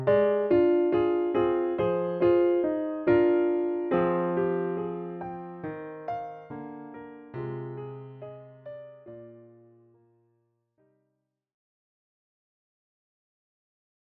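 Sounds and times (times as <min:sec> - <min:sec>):
piano accompaniment in E-flat high: 0:00.0 - 0:10.2.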